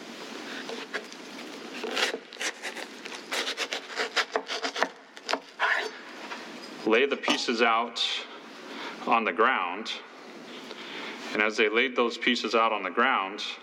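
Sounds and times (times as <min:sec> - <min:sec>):
watermelon being cut in half through rind and flesh: 0:00.6 - 0:06.0
speech: 0:06.9 - 0:08.2, 0:09.1 - 0:10.1, 0:11.3 - 0:13.6.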